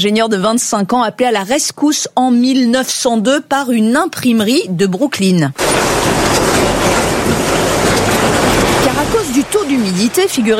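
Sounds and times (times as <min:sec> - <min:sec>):
speech: 0:00.0 - 0:06.6, 0:09.0 - 0:10.5
train at a railway station platform: 0:05.6 - 0:10.5.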